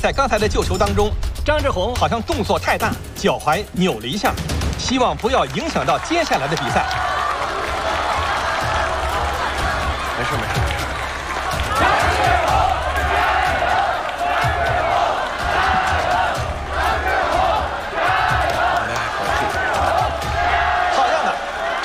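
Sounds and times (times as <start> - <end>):
speech: 0.0 - 7.1
arena crowd cheering: 4.7 - 21.8.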